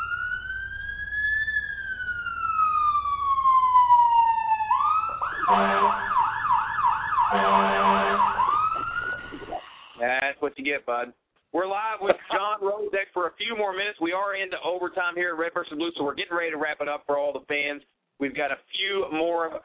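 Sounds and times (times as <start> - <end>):
studio buzzer siren sound effect: 0.0 - 10.0
speech: 10.6 - 19.6.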